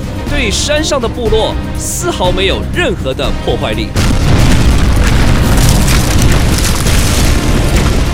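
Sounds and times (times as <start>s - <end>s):
speech: 0.4s - 4.3s
heavy cannon bombardment in a radio drama: 4.0s - 8.1s.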